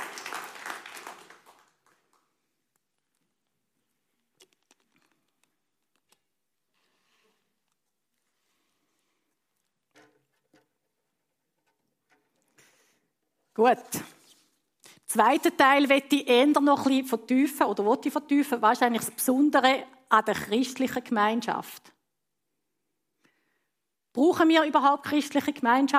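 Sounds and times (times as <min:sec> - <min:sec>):
scattered claps: 0:00.0 - 0:02.3
audience clapping: 0:00.0 - 0:02.6
speech: 0:13.6 - 0:14.2, 0:15.1 - 0:22.0, 0:24.2 - 0:25.9.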